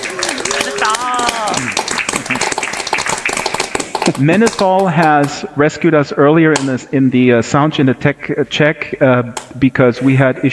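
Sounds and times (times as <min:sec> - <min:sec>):
audience applause: 0:00.0 - 0:04.9
speech: 0:04.2 - 0:10.5.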